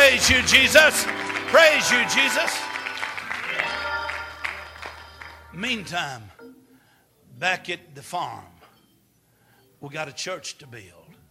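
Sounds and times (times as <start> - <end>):
congregation clapping hands in church during praise: 0.0 - 6.3
sustained tones: 0.0 - 6.7
speech: 0.3 - 2.8, 5.6 - 6.3, 7.4 - 8.5, 9.8 - 11.0.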